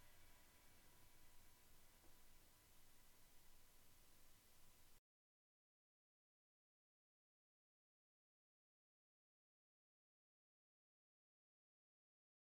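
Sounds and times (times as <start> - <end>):
Vigor Rock Shiny Crash 18 crash cymbal: 0.0 - 5.0.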